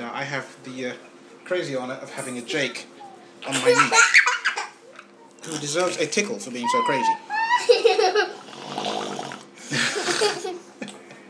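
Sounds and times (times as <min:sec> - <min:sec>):
speech: 0:00.2 - 0:04.2, 0:05.4 - 0:08.3, 0:09.7 - 0:10.8
child blowing a raspberry imitating an old motorbike engine: 0:08.2 - 0:10.5
laughter: 0:09.6 - 0:11.2.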